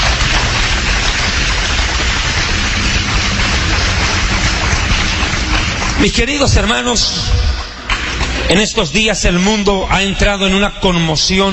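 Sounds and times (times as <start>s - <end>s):
audience applause: 0.0s - 9.0s
speech: 6.0s - 7.4s, 8.5s - 11.5s.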